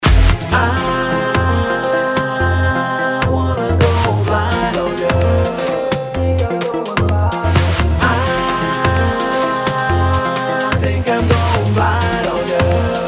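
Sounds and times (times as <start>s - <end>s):
music: 0.0s - 13.0s.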